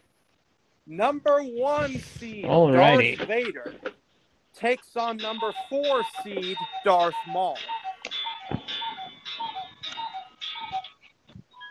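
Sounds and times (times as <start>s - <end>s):
speech: 0.9s - 3.9s, 4.6s - 7.8s
several clocks ringing chimes: 4.9s - 11.0s.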